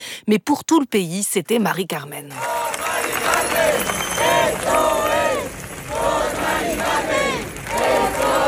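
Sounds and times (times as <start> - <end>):
speech: 0.2 - 2.6, 3.2 - 5.1
crowd chanting a woman's name: 2.4 - 8.4.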